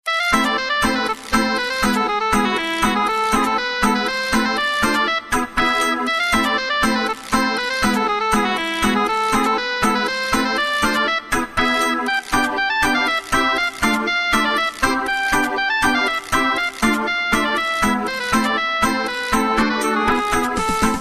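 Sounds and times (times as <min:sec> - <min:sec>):
Finnish polska folk dance tune: 0:00.1 - 0:20.9.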